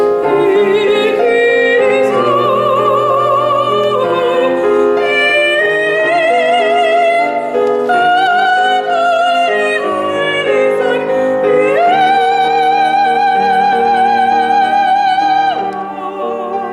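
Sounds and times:
woman singing French art songs and cradle songs: 0:00.0 - 0:16.7.

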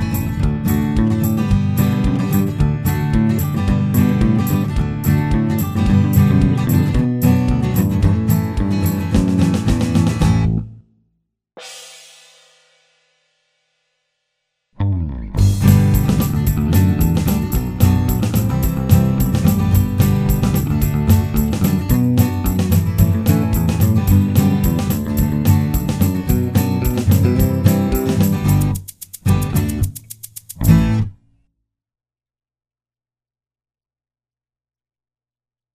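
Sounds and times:
one-man band playing a cover: 0:00.2 - 0:10.5, 0:15.4 - 0:31.0.

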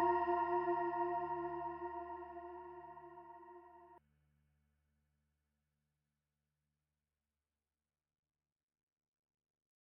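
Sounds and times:
vocal music: 0:00.0 - 0:03.6.

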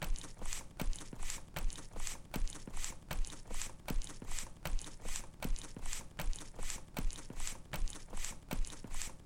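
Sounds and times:
milking machine: 0:00.0 - 0:09.2.

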